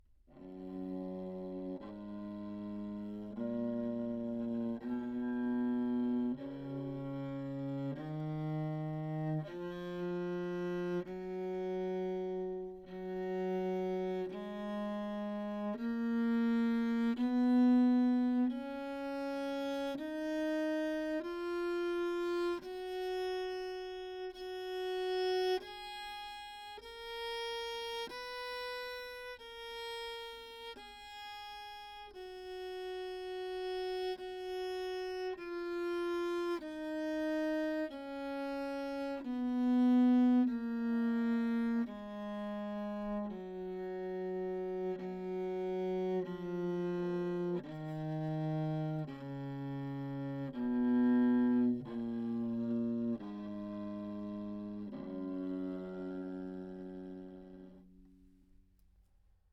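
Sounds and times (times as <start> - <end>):
tenor viol recorded with a back microphone: 0.0 - 58.8.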